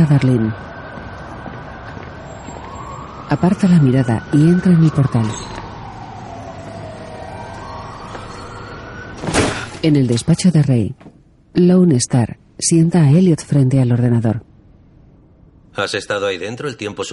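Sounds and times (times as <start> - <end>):
speech: 0.0 - 0.7, 3.3 - 5.6, 9.8 - 14.5, 15.8 - 17.1
police car passing with siren: 0.0 - 9.2.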